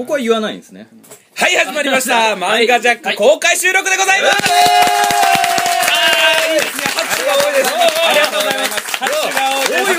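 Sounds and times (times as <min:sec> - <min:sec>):
speech: 0:00.0 - 0:05.2
audience applause at live recording: 0:04.3 - 0:09.9.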